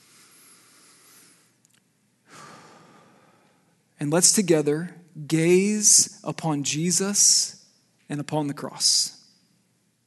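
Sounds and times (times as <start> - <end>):
slow deep breath during a church sermon: 0.0 - 1.6, 2.2 - 3.8
speech: 4.0 - 9.2.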